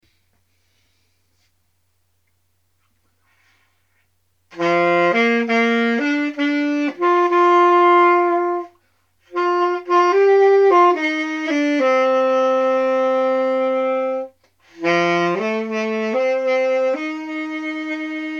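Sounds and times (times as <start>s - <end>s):
saxophone: 4.5s - 18.3s.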